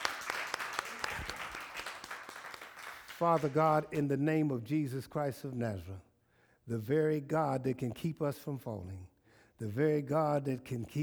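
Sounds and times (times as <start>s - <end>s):
audience hand clapping: 0.0s - 4.0s
speech: 3.2s - 6.1s, 6.7s - 11.0s.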